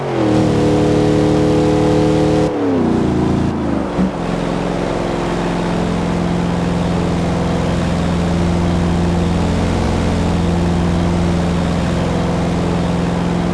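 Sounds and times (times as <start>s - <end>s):
vehicles cruising: 0.0s - 13.5s.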